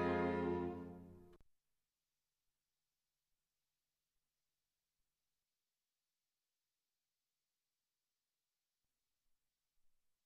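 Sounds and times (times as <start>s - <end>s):
violin, viola and cello trio playing: 0.0s - 1.0s.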